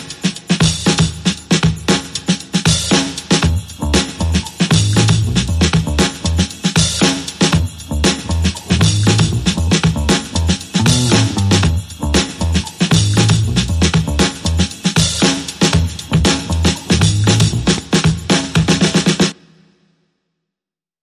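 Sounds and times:
drums: 0.0s - 19.9s
bass: 3.3s - 18.2s.

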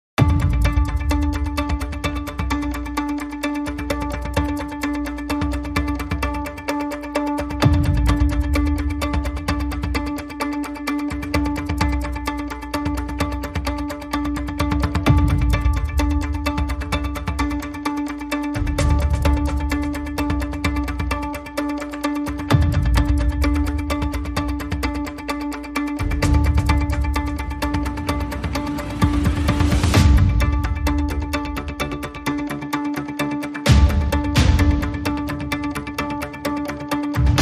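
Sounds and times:
clocked strings: 0.2s - 37.4s.

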